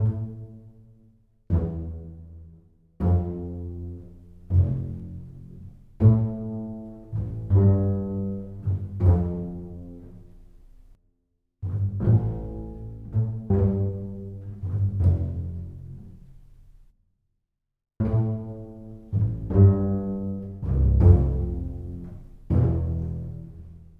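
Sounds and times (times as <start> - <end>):
pizzicato bass: 3.0 - 10.9, 11.6 - 16.6, 18.0 - 23.9.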